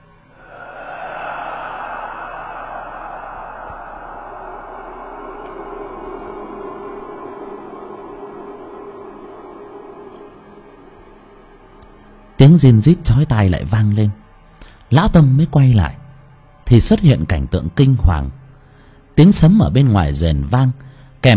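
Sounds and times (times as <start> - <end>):
very soft breathing: 0.3 - 10.0
speech: 12.4 - 14.2, 14.9 - 16.0, 16.7 - 18.4, 19.2 - 21.3.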